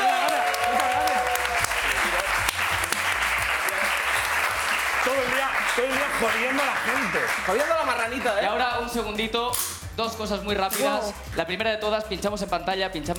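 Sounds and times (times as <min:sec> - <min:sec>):
audience applause: 0:00.0 - 0:08.4
speech: 0:06.2 - 0:13.1.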